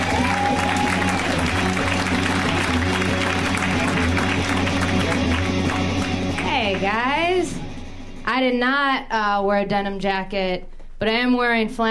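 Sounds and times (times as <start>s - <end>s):
comedy show audience applauding a comedian: 0.0s - 6.8s
speech: 8.5s - 11.8s.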